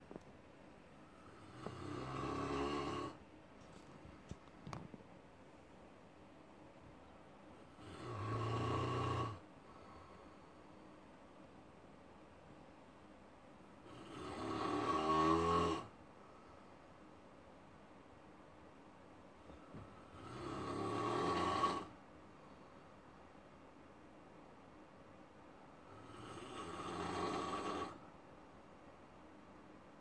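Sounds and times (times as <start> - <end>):
person snoring: 1.2 - 3.2, 7.7 - 10.0, 13.8 - 15.9, 20.0 - 21.9, 25.9 - 28.0.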